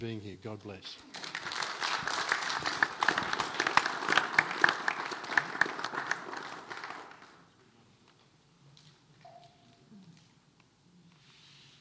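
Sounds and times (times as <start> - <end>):
speech: 0.0 - 1.2
crowd applauding: 1.1 - 7.5.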